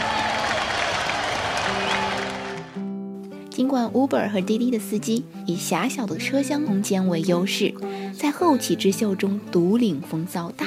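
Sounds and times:
audience applause: 0.0s - 2.8s
speech: 3.6s - 10.6s.

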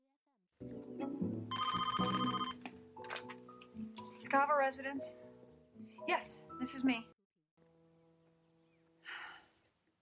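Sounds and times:
telephone ringing: 1.5s - 2.7s
speech: 4.2s - 5.2s, 6.1s - 7.1s.

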